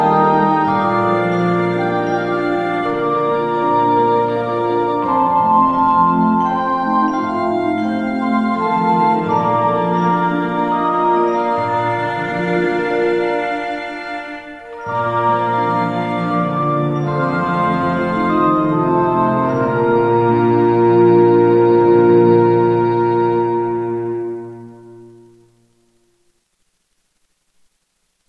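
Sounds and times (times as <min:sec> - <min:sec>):
cello playing a Christmas carol in G: 0:00.0 - 0:25.7.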